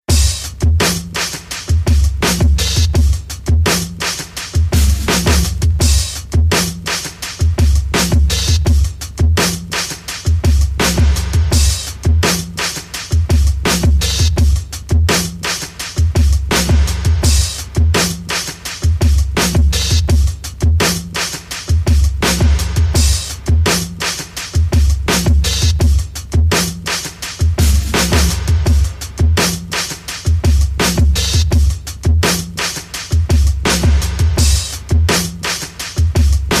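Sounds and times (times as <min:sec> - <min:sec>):
beat: 0:00.1 - 0:36.5.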